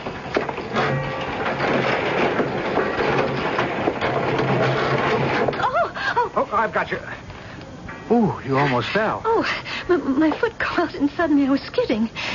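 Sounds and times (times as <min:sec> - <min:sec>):
old door creaking open: 0:00.0 - 0:05.6
speech: 0:06.6 - 0:07.2, 0:08.1 - 0:12.3.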